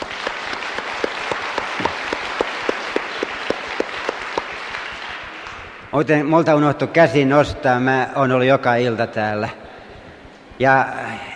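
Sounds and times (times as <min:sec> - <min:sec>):
crowd applause: 0:00.0 - 0:05.9
speech: 0:05.9 - 0:09.6, 0:10.6 - 0:11.3.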